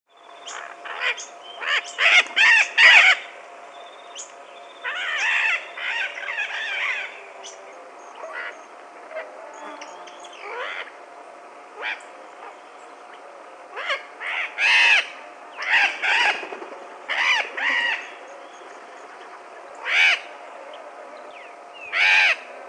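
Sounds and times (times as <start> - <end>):
yellow-collared macaw screeching: 0.5 - 3.3, 4.8 - 7.2, 13.7 - 18.2, 19.8 - 20.3, 21.9 - 22.5.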